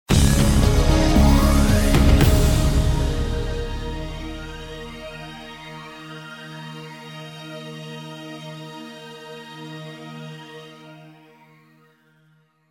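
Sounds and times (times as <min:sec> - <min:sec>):
news music stab with long hold: 0:00.1 - 0:05.9.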